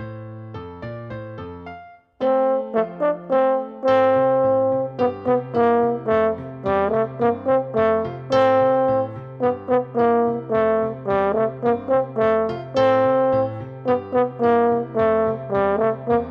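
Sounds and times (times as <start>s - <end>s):
piano: 0.0s - 16.2s
French horn solo: 2.2s - 16.2s.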